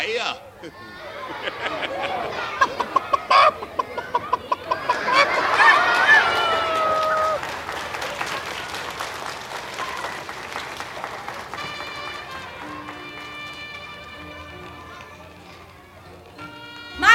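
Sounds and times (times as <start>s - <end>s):
laughter: 0.6s - 9.0s
chickens clucking in an overlapping chorus: 2.0s - 5.4s
rooster's drawn-out crow: 5.0s - 7.4s.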